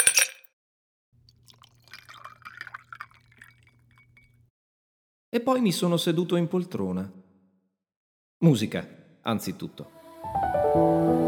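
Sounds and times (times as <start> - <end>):
martini poured into a glass at a home bar: 0.0 - 0.4, 1.2 - 4.4
speech: 5.4 - 7.2, 8.4 - 10.5.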